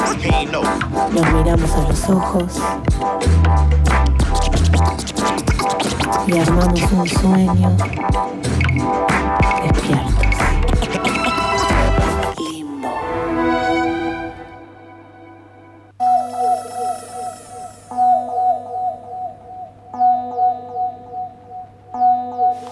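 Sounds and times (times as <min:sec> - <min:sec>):
radio show interlude music by a keyboardist: 0:00.0 - 0:22.7
speech: 0:00.1 - 0:05.5, 0:06.1 - 0:11.1.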